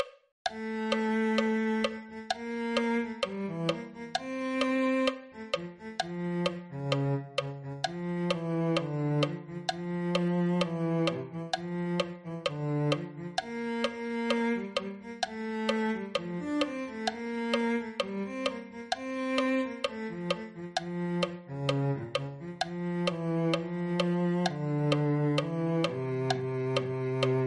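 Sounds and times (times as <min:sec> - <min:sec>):
cello: 0:00.0 - 0:27.4.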